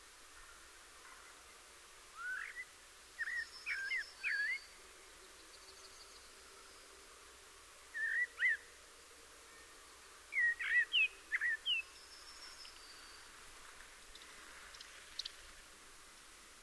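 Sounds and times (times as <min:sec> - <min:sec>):
faint high twittering: 0:02.1 - 0:07.3, 0:07.9 - 0:08.8, 0:09.4 - 0:15.7
common blackbird fluted whistling: 0:02.2 - 0:04.7, 0:08.0 - 0:08.6, 0:10.3 - 0:11.9.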